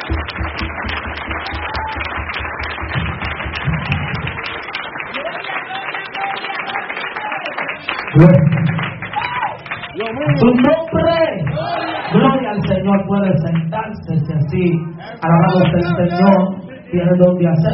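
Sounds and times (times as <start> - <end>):
audience applauding at a night worship service: 0.0 - 16.3
speech: 8.2 - 8.6, 10.2 - 11.1, 12.1 - 17.7.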